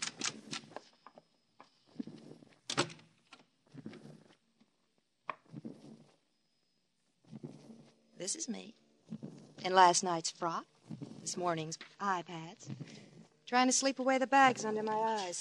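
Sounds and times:
door opening as someone walks in: 0:02.7 - 0:03.1
speech: 0:08.2 - 0:08.8, 0:09.6 - 0:15.3.

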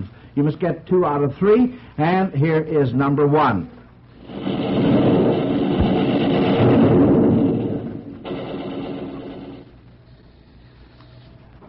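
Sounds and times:
speech: 0:00.4 - 0:04.5
thunder sound effect: 0:04.2 - 0:09.8.

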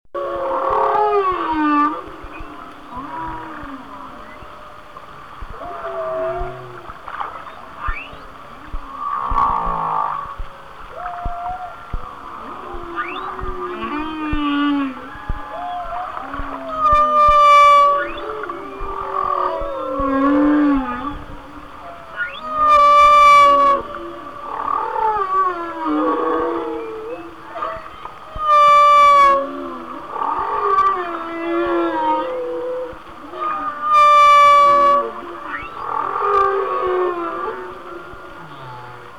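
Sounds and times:
whales singing: 0:00.2 - 0:39.1.

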